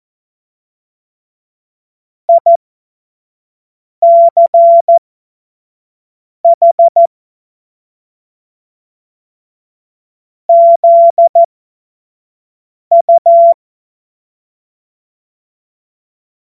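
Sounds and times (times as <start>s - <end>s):
Morse code course tones: 2.3s - 2.6s, 4.0s - 5.0s, 6.5s - 7.1s, 10.5s - 11.5s, 12.9s - 13.6s.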